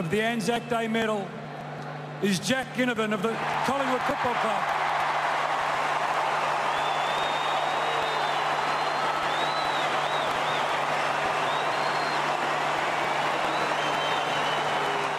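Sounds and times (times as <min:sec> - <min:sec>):
speech: 0:00.0 - 0:01.4, 0:02.2 - 0:04.8
huge stadium crowd booing during medal announcement: 0:03.3 - 0:15.1
shrill whistles: 0:06.6 - 0:12.4, 0:13.0 - 0:15.1.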